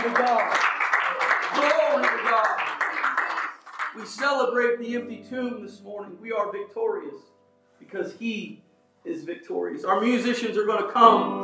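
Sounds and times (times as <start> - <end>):
audience hand clapping: 0.0 - 4.6
speech: 1.6 - 2.6, 4.0 - 11.4.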